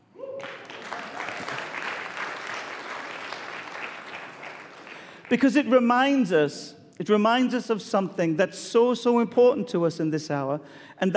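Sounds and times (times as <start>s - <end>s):
audience clapping: 0.0s - 5.6s
speech: 5.3s - 11.1s.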